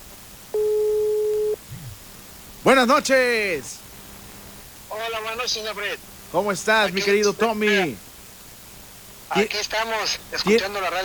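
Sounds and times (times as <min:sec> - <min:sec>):
telephone line beep while a listener's number is dialed: 0:00.6 - 0:01.6
speech: 0:02.6 - 0:03.8, 0:05.0 - 0:08.0, 0:09.3 - 0:11.0.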